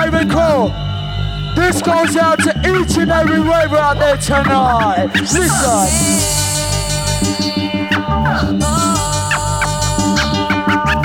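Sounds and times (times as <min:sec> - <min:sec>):
speech: 0:00.2 - 0:00.9, 0:01.6 - 0:06.4, 0:08.2 - 0:09.0
DJ turntable scratching: 0:04.4 - 0:11.0.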